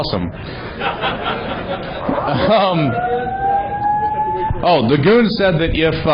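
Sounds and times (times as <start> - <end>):
speech: 0.0 - 3.4, 4.6 - 6.1
crowd chatter and laughter: 0.4 - 4.7
steady high electronic alarm tone: 2.2 - 5.0.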